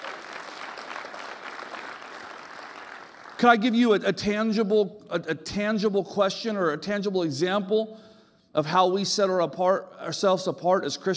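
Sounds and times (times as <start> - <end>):
audience applause: 0.0 - 3.4
speech: 3.4 - 11.1.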